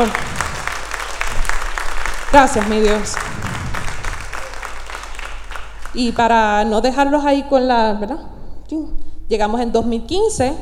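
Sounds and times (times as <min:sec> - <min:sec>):
speech: 0:00.0 - 0:00.3, 0:02.3 - 0:03.4, 0:06.0 - 0:10.5
audience applauding: 0:00.0 - 0:06.2.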